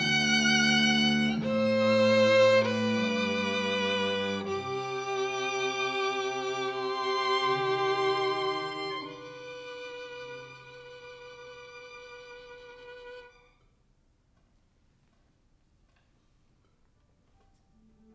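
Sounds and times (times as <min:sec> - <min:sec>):
violin: 0:00.0 - 0:13.7.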